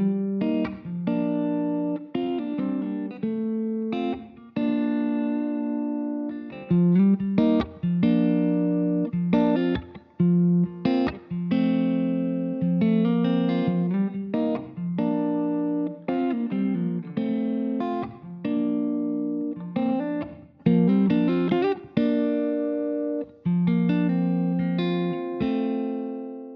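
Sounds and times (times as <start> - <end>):
guitar with room reverb at varying depth: 0.0 - 26.5.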